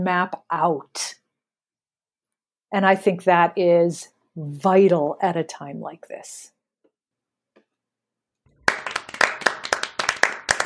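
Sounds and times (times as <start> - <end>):
speech: 0.0 - 1.2, 2.7 - 6.5
audience applause: 8.6 - 10.6.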